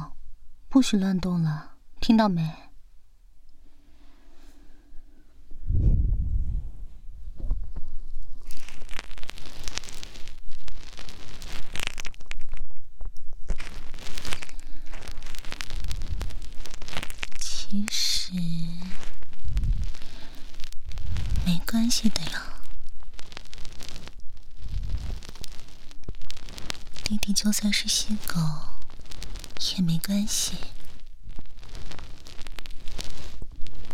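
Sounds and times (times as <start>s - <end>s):
speech: 0.7s - 2.6s
soft low thump: 5.7s - 7.9s
ear cleaning ASMR scratching: 8.4s - 12.6s, 13.5s - 17.6s, 18.6s - 33.9s.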